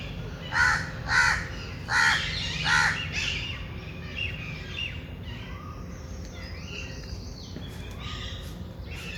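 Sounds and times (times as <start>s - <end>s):
bird giving harsh grating caws: 0.5s - 3.0s.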